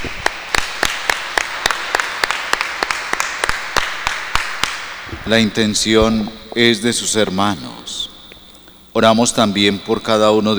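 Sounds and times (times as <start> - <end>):
audience applause: 0.0 - 8.1
speech: 5.2 - 8.1, 9.0 - 10.5.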